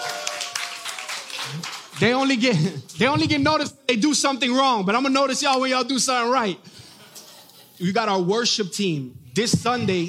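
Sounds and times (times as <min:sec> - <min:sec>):
faint voice or cheer: 0:00.0 - 0:01.7
crowd applauding: 0:00.0 - 0:02.8
speech: 0:01.5 - 0:06.8, 0:07.8 - 0:10.0.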